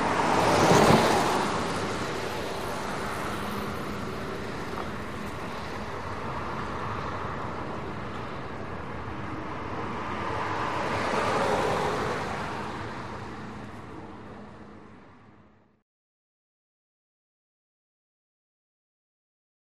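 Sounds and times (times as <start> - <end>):
car passing by from left to right: 0.0 - 14.2.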